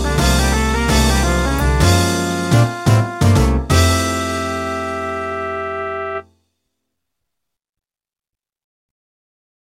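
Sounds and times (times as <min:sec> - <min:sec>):
jazz music: 0:00.0 - 0:06.3.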